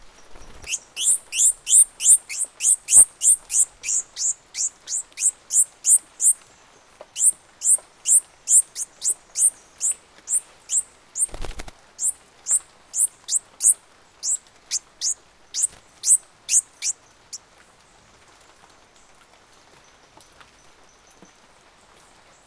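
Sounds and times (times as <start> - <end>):
crackling noise: 0.0 - 19.3
bird calling: 0.6 - 6.4, 7.1 - 11.4, 12.0 - 17.0.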